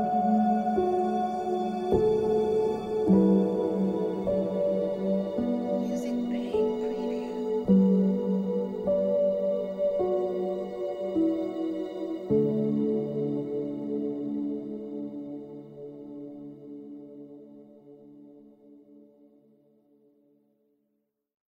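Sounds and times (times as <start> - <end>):
ambient soundscape: 0.0 - 19.0.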